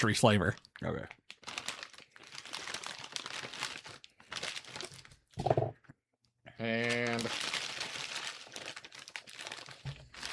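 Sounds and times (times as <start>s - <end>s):
speech: 0.0s - 1.2s, 6.6s - 7.5s
Kool-Aid drink mix packet crinkling and tearing open: 1.2s - 5.4s, 6.8s - 10.3s.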